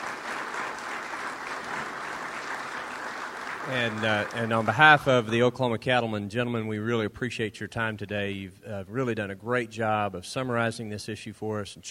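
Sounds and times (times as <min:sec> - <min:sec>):
audience applause: 0:00.0 - 0:05.4
speech: 0:03.7 - 0:11.8.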